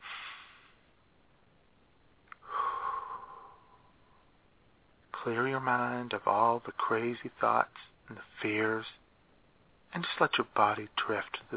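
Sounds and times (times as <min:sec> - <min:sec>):
deep breath in through the nose and out through the mouth: 0:00.0 - 0:00.9, 0:02.4 - 0:04.4
speech: 0:05.2 - 0:09.0, 0:09.9 - 0:11.5.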